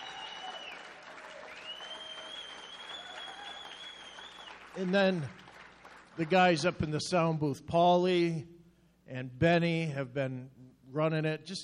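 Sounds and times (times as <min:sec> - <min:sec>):
audience clapping: 0:00.0 - 0:07.0
speech: 0:04.8 - 0:05.4, 0:06.2 - 0:08.5, 0:09.1 - 0:11.6.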